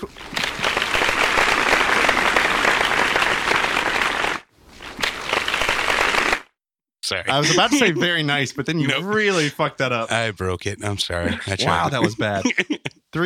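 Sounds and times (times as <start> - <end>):
applause: 0.0 - 6.6
speech: 7.1 - 13.2
laughter: 7.2 - 13.2.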